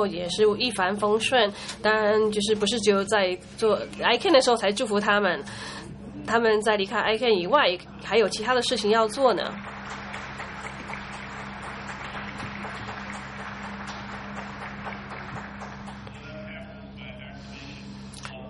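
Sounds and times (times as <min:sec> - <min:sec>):
speech: 0:00.0 - 0:10.0
audience applause: 0:09.1 - 0:16.3.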